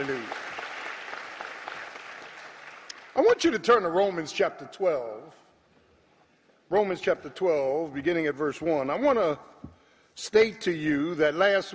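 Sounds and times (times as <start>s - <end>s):
speech: 0.0s - 0.4s, 3.4s - 5.4s, 6.7s - 9.5s, 10.2s - 11.7s
audience applause: 0.0s - 3.2s.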